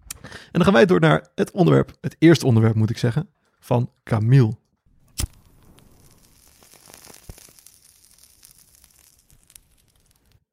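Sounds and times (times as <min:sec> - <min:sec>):
speech: 0:00.6 - 0:04.6
match or lighter strike: 0:05.0 - 0:10.5
soft crackling hiss and sizzling: 0:05.0 - 0:10.5.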